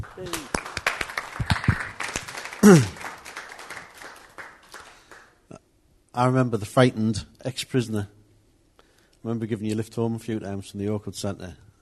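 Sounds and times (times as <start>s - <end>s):
audience clapping: 0.0s - 5.4s
speech: 0.1s - 0.5s, 2.6s - 2.9s, 6.2s - 8.2s, 9.2s - 11.6s.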